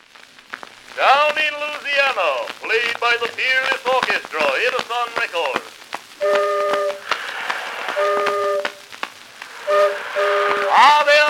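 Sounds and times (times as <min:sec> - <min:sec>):
speech: 0:01.0 - 0:06.6
excursion steamboat whistle: 0:06.2 - 0:07.2, 0:07.8 - 0:08.8, 0:09.6 - 0:11.2.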